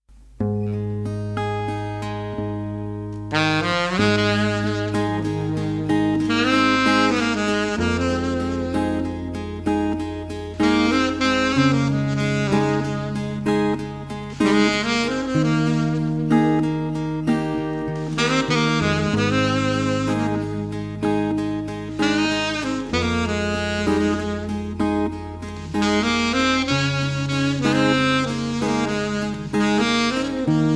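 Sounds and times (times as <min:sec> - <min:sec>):
saxophone: 0:00.6 - 0:30.7.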